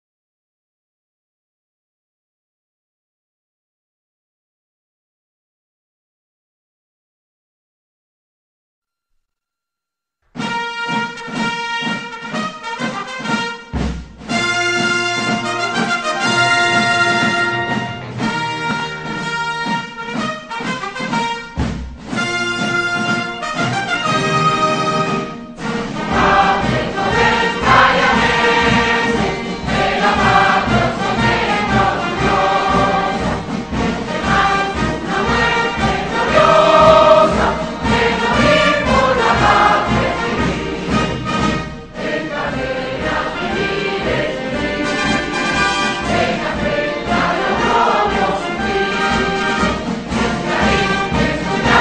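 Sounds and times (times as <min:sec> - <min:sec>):
national anthem: 0:10.4 - 0:51.8.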